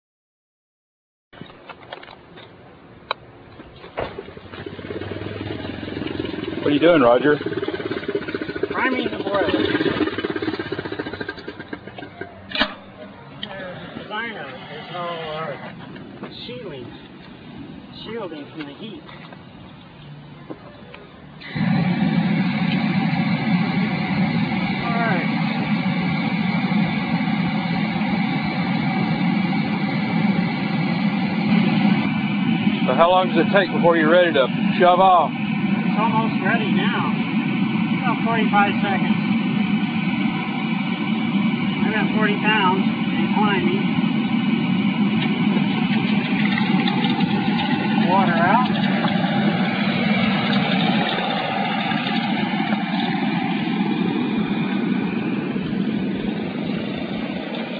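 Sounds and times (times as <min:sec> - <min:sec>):
steam bike: 0:04.0 - 0:18.8, 0:21.3 - 0:57.7.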